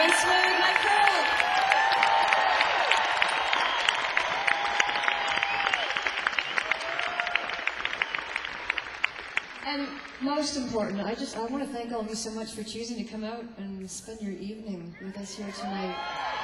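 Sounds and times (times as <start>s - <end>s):
crowd whooping: 0.0s - 8.9s, 15.4s - 16.4s
audience applause for the crew of a live evening show: 0.0s - 10.2s, 15.9s - 16.4s
speech: 10.4s - 16.4s.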